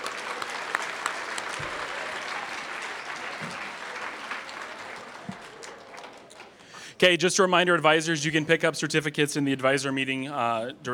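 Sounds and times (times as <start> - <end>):
crowd applause: 0.0 - 6.8
speech: 7.0 - 10.9.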